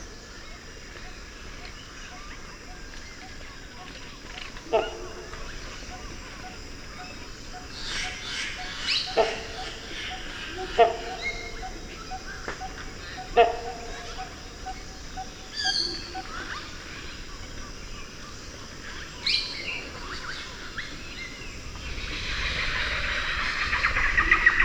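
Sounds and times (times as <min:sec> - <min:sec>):
deep jungle ambience: 0:00.0 - 0:24.6.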